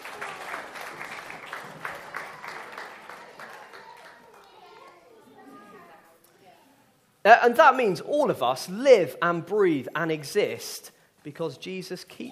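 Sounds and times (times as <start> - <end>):
audience applause for children: 0.0 - 5.0
excited children's voices and chatter: 1.9 - 7.0
speech: 7.3 - 12.3.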